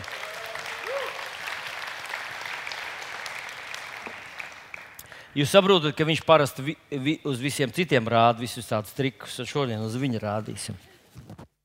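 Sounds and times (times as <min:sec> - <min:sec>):
audience applause: 0:00.0 - 0:05.3
speech: 0:05.3 - 0:10.9.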